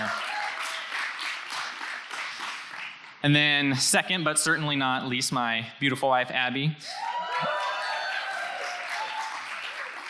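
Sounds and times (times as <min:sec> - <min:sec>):
large crowd applauding: 0:00.0 - 0:03.2, 0:06.9 - 0:10.0
speech: 0:03.2 - 0:07.5.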